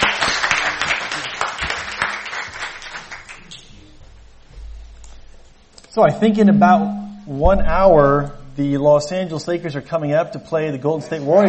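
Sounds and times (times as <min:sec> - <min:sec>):
audience applause: 0:00.0 - 0:03.6
speech: 0:06.0 - 0:11.4.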